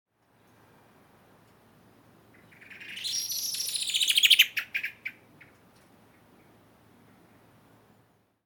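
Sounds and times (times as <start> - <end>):
Common blackbird calling: 2.3 - 6.5.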